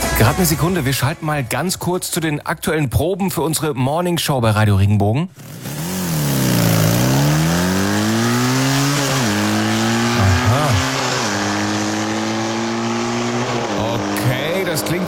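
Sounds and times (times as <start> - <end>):
speech: 0.2 - 5.8, 14.8 - 15.0
motocross bike engine revving: 5.3 - 15.0.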